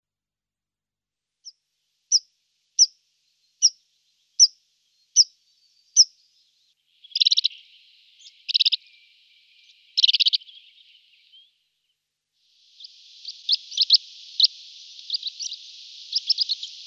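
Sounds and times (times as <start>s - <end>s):
meadow pipit chirping: 4.4s - 6.2s, 7.0s - 11.6s, 12.7s - 16.8s.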